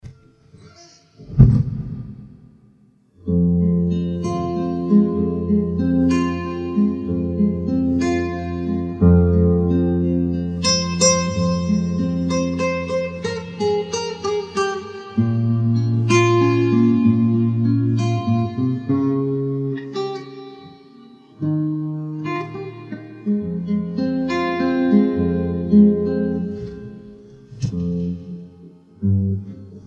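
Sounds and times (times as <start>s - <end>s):
guitar: 3.2s - 29.8s.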